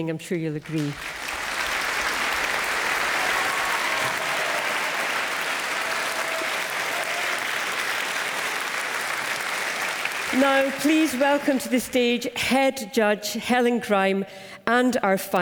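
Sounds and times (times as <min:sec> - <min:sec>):
speech: 0:00.0 - 0:01.3, 0:10.4 - 0:15.4
audience applause after an orchestra performance: 0:00.7 - 0:11.8.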